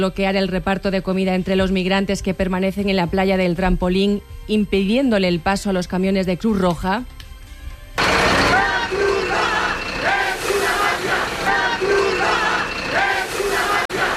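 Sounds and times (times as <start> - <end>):
speech: 0.0 - 7.2
protest crowd chanting slogans: 8.0 - 14.1.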